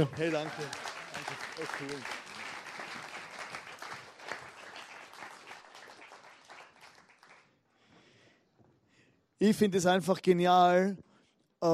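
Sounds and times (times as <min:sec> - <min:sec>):
speech: 0:00.0 - 0:02.2, 0:09.4 - 0:11.7
audience applause: 0:00.0 - 0:07.6.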